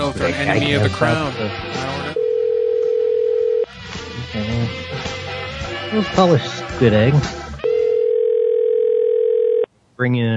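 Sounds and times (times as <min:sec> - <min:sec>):
speech: 0:00.1 - 0:02.1, 0:04.3 - 0:05.2, 0:05.9 - 0:07.4, 0:10.0 - 0:10.3
incoming Skype call tone: 0:02.1 - 0:03.7, 0:07.6 - 0:09.7.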